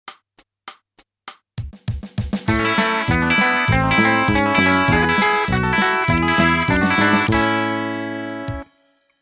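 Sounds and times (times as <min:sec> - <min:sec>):
country music: 0:02.5 - 0:08.7.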